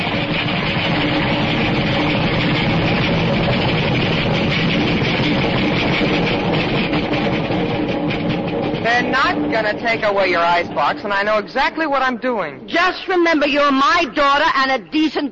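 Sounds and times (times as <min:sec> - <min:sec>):
express train passing: 0:00.0 - 0:15.1
speech: 0:09.6 - 0:15.3.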